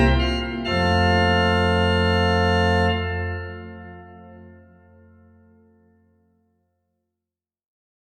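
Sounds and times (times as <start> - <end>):
bourree played on a church organ: 0.0 - 5.7.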